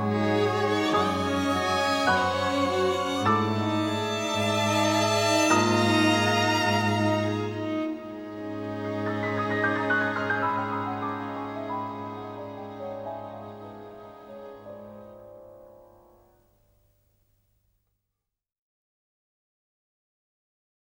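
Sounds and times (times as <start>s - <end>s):
mellow unison piano music: 0.0s - 16.5s.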